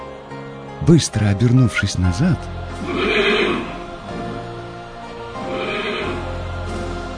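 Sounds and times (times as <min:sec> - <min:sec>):
speech: 0:00.8 - 0:03.1
horse neighing toward a mare: 0:02.8 - 0:03.9, 0:05.4 - 0:06.4.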